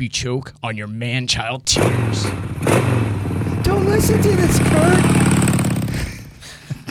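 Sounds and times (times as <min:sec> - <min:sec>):
speech: 0:00.0 - 0:05.3
motorcycle engine: 0:01.7 - 0:06.4.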